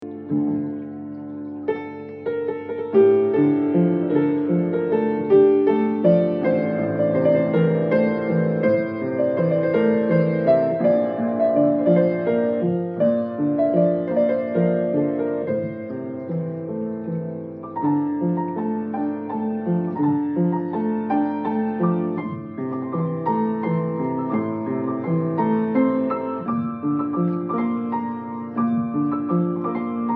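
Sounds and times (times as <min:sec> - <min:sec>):
piano: 0:00.0 - 0:30.1.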